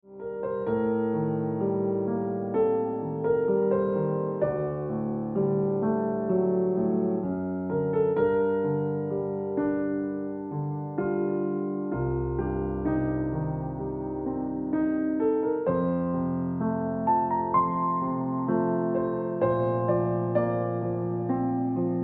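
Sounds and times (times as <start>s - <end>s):
piano ringtone music: 0.2s - 22.0s.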